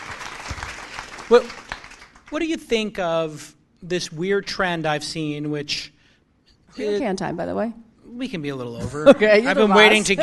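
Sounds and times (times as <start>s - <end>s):
round of applause: 0.0s - 2.5s
speech: 1.3s - 1.6s, 2.3s - 6.0s, 6.7s - 10.2s.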